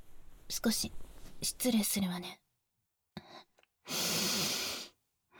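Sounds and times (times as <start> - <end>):
speech: 0.6 - 2.4
person sniffing unwashed underwear: 3.9 - 5.0.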